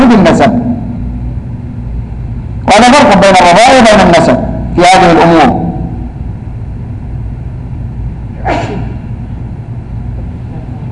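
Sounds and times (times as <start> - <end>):
low rumbling hum: 0.0 - 10.9
speech: 2.9 - 4.3, 4.9 - 5.6
person sneezing: 8.4 - 9.1.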